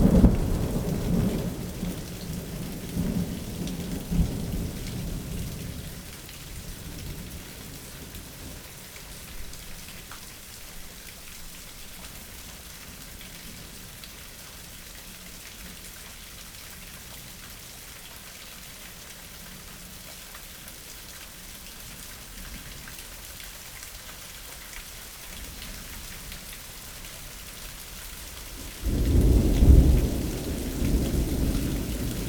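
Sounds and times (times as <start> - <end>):
spring thunderstorm in suburbs: 0.0 - 8.6, 28.6 - 32.2.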